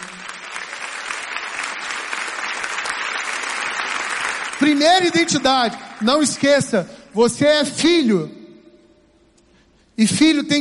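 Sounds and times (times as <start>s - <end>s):
applause: 0.0s - 7.4s
speech: 4.6s - 8.4s, 10.0s - 10.6s.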